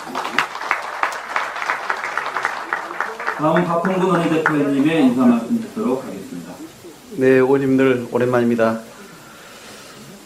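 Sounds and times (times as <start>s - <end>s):
applause at a party lawmakers' caucus meeting: 0.0s - 5.2s
speech: 3.4s - 6.6s, 7.2s - 8.9s.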